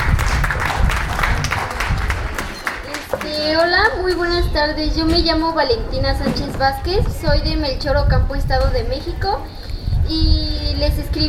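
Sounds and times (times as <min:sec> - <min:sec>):
audience applause: 0:00.0 - 0:03.7
speech: 0:03.7 - 0:11.2.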